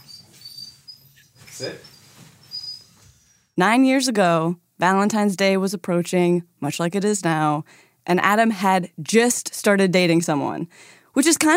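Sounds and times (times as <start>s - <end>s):
dog moving and making noise: 0.0s - 3.3s
speech: 1.6s - 1.9s, 3.6s - 11.5s.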